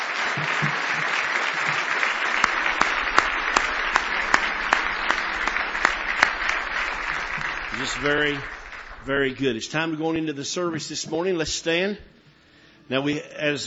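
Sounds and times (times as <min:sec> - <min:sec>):
audience applauding with hand claps: 0:00.0 - 0:10.2
speech: 0:07.8 - 0:12.2, 0:12.9 - 0:13.6.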